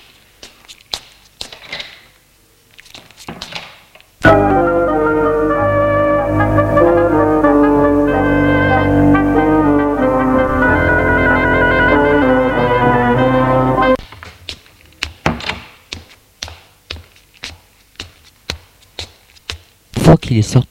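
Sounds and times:
held musical chord: 4.2 - 14.0
speech: 20.3 - 20.6.

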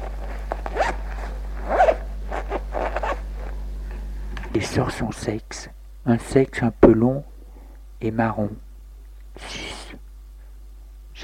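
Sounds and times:
trouser zipper being opened: 0.0 - 3.5
speech: 4.6 - 7.3, 8.0 - 8.6, 9.4 - 9.6.

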